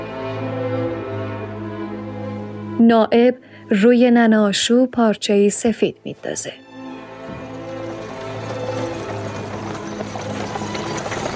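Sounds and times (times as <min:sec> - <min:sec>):
speech: 0:02.8 - 0:06.7
horse-drawn carriage rolling rumble: 0:07.2 - 0:11.3.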